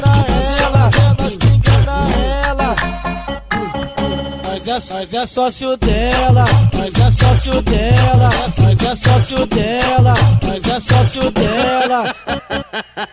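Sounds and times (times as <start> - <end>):
funk bass: 0.0 - 4.3, 5.8 - 11.6
laughter: 11.4 - 13.1.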